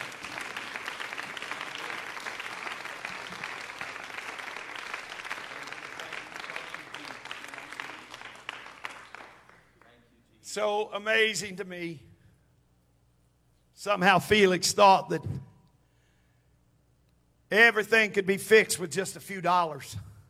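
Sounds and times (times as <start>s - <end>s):
audience clapping hands in praise: 0.0s - 10.1s
speech: 10.6s - 12.1s, 13.8s - 15.4s, 17.6s - 20.1s.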